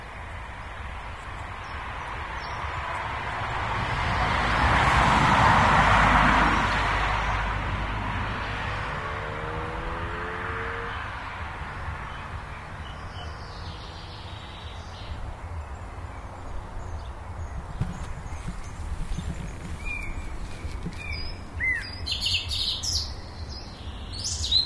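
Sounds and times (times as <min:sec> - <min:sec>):
birds: 0:00.0 - 0:24.6
cars: 0:00.0 - 0:24.6.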